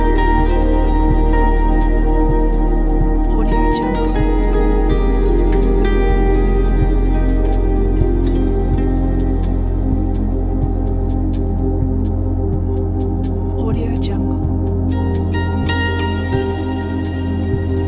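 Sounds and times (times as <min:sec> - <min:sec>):
ambient atmosphere: 0:00.0 - 0:17.8.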